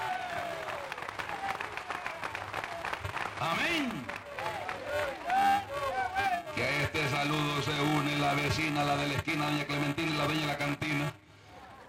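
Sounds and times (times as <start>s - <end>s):
audience applauding: 0.0s - 6.6s
speech: 3.4s - 4.2s, 7.0s - 11.2s.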